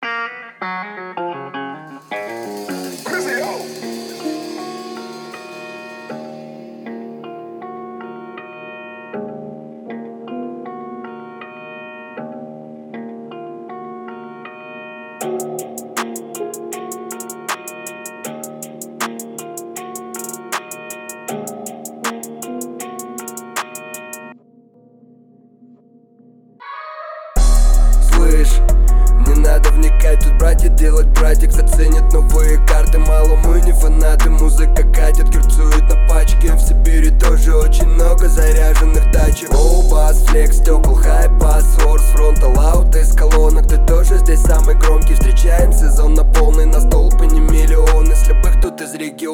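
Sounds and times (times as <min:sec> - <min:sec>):
37 39 and 41 Hz low bass tones: 0:27.4 - 0:48.7.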